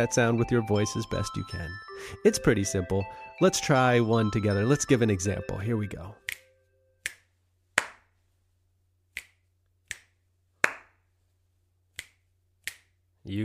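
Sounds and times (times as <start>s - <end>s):
speech: 0.0s - 6.3s, 13.2s - 13.4s
finger snaps: 6.2s - 8.0s, 9.1s - 10.9s, 11.9s - 13.0s
hand claps: 6.2s - 8.1s, 9.2s - 11.0s, 12.0s - 13.0s.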